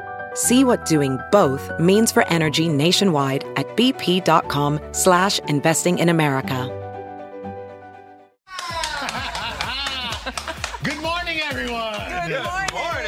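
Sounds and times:
speech: 0:00.4 - 0:06.8
laughter: 0:08.5 - 0:11.1
excited voices: 0:08.5 - 0:13.0
hands clapping: 0:08.5 - 0:13.0.

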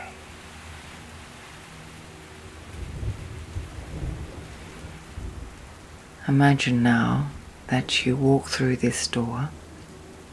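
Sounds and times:
low rolling thunder: 0:00.0 - 0:10.3
steady rain: 0:00.0 - 0:10.3
speech: 0:06.3 - 0:09.6.

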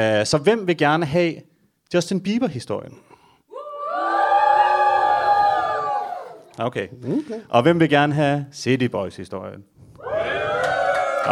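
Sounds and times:
speech: 0:00.0 - 0:03.2, 0:06.6 - 0:09.8
audience whooping and cheering: 0:03.5 - 0:06.6, 0:10.0 - 0:11.3.

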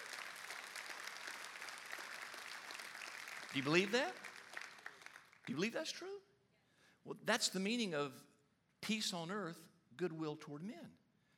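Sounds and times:
audience applauding: 0:00.0 - 0:05.8
speech: 0:03.5 - 0:04.3, 0:05.5 - 0:06.3, 0:07.0 - 0:11.0.

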